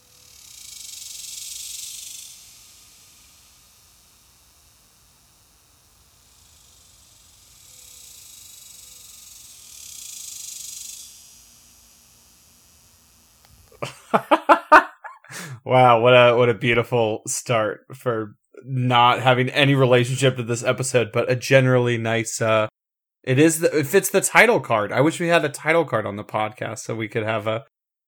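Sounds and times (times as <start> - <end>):
cicadas buzzing outdoors: 0.0 - 14.6
laughter: 13.8 - 16.5
speech: 15.7 - 27.7.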